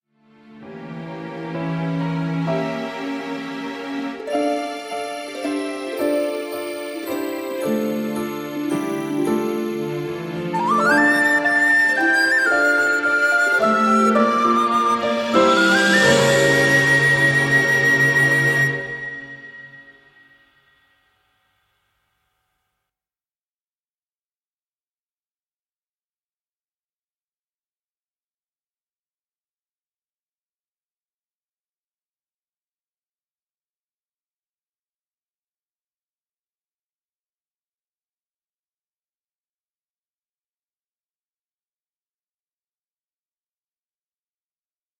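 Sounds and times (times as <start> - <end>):
interlude music playback: 0.2 - 20.4.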